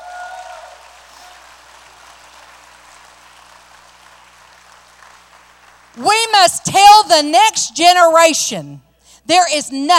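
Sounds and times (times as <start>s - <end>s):
crowd applauding: 0.0s - 6.5s
speech: 6.0s - 9.9s.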